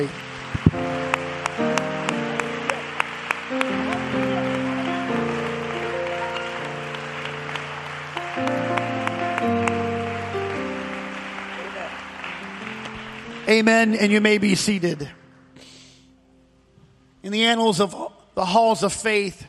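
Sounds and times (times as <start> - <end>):
speech: 0.0 - 0.2, 13.5 - 15.2, 17.3 - 19.4
audience clapping hands: 0.0 - 15.2.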